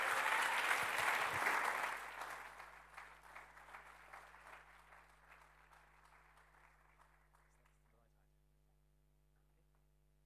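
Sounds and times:
church congregation applauding to welcome a speaker: 0.0s - 8.1s.

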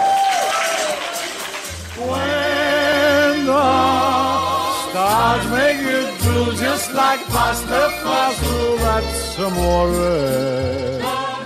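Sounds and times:
crowd applauding and cheering: 0.0s - 8.6s
speech: 5.2s - 11.3s.

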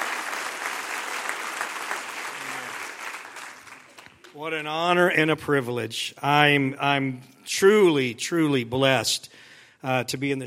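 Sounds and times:
audience clapping: 0.0s - 4.5s
speech: 4.4s - 10.4s.

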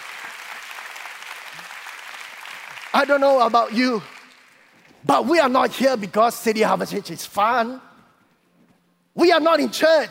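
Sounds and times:
church congregation applauding during a sermon: 0.0s - 5.4s
speech: 3.0s - 4.1s, 5.0s - 7.9s, 9.2s - 10.0s.

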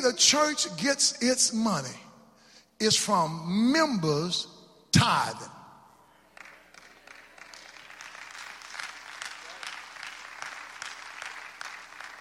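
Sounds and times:
speech: 0.0s - 2.1s, 2.8s - 5.6s
scattered hand clapping from a small audience: 6.3s - 12.1s.

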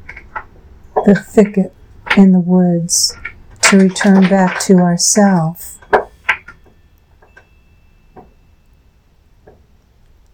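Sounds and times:
speech: 1.0s - 5.8s
bells outside door clanging in wind: 3.2s - 9.8s.

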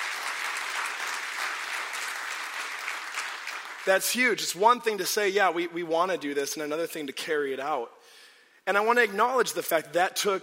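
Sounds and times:
audience applause: 0.0s - 4.0s
speech: 3.9s - 8.0s, 8.7s - 10.4s.

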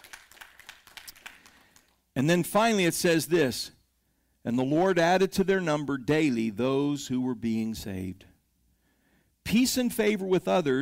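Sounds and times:
audience hand clapping: 0.0s - 2.0s
speech: 2.2s - 3.8s, 4.4s - 8.3s, 9.5s - 10.8s.

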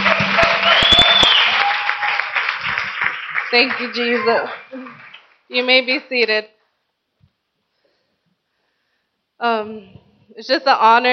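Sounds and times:
church congregation applause welcoming the pastor's wife: 0.0s - 5.5s
speech: 3.5s - 6.6s, 9.4s - 11.1s.

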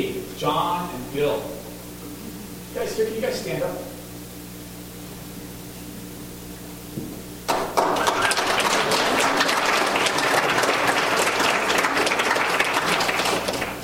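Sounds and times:
speech: 0.0s - 1.6s, 2.8s - 3.9s
low room hum: 0.0s - 13.8s
audience applause: 7.5s - 13.8s.

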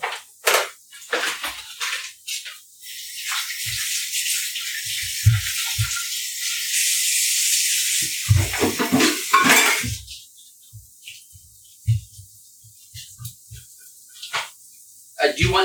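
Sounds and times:
splashes and clatters: 0.0s - 6.8s, 7.9s - 14.6s
running tap water rinsing tomato juice off hands: 0.0s - 15.6s
speech: 15.4s - 15.6s.

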